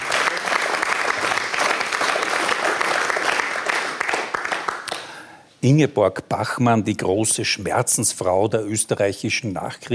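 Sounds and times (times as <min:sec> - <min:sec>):
applause: 0:00.0 - 0:05.3
speech: 0:05.6 - 0:09.9.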